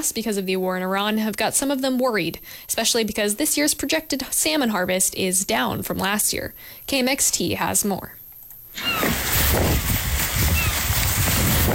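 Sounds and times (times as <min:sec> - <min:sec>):
speech: 0:00.0 - 0:08.2, 0:08.8 - 0:10.0
wind at a harbor boat dock in Kodiak: 0:08.7 - 0:11.7.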